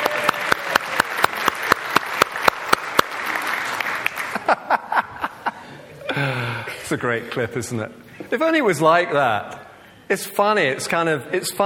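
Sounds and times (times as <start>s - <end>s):
audience applause for bank managers: 0.0s - 5.0s
laughter: 4.2s - 6.4s
speech: 6.9s - 11.6s.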